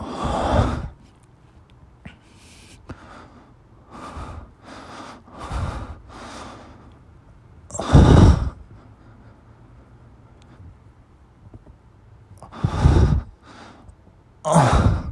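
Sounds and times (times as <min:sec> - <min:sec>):
breathing during masturbation: 0:00.0 - 0:01.0, 0:02.1 - 0:07.0, 0:07.8 - 0:10.8, 0:12.4 - 0:13.9
moaning during masturbation: 0:14.5 - 0:15.1.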